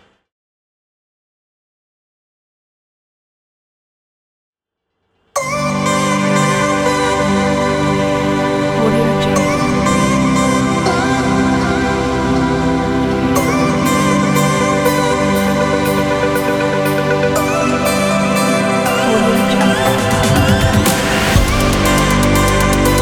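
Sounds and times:
chill soundscape: 0:05.4 - 0:23.0.

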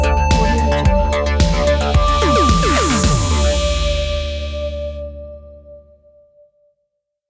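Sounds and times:
80s futuristic logo jingle: 0:00.0 - 0:05.7.

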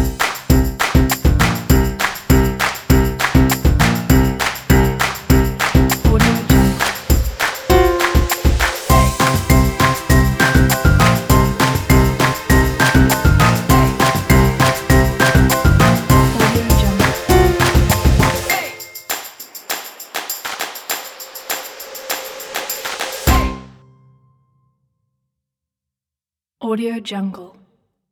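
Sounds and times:
jazz music: 0:00.0 - 0:18.7, 0:23.3 - 0:23.8
hand claps: 0:00.0 - 0:23.4.

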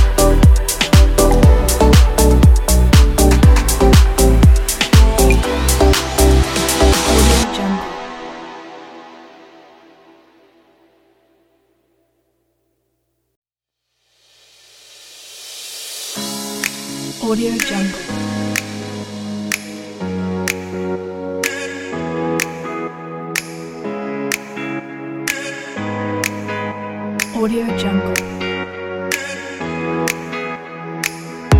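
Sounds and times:
deep house music: 0:00.0 - 0:09.4, 0:16.2 - 0:31.5.

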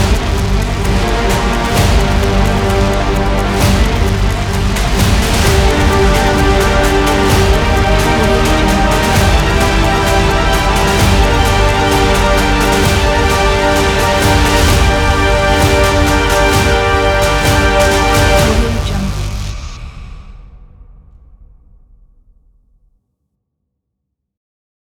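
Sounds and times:
epic trailer clock ticking: 0:00.0 - 0:19.2.

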